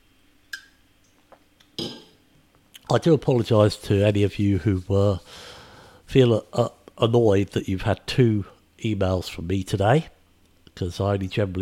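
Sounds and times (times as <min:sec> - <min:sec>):
glass clattering as handled: 0:01.8 - 0:02.2
glass clinking: 0:01.8 - 0:02.2
glass tapping: 0:01.8 - 0:02.2
speech: 0:02.9 - 0:05.5, 0:06.1 - 0:10.2, 0:10.8 - 0:11.6.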